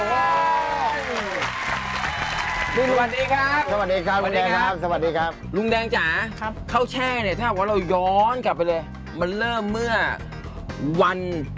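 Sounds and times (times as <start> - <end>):
audience applause: 0.0 - 3.8
speech: 2.8 - 11.5.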